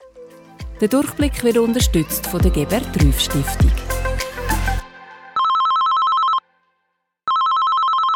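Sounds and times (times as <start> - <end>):
speech: 0.8 - 3.9
telephone ringing with warbling electronic tone: 5.4 - 6.5, 7.3 - 8.1.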